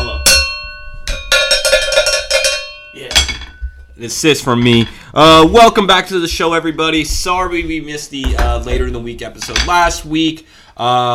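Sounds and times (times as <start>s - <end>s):
cowbell being struck: 0.0s - 4.0s
speech: 4.0s - 11.1s.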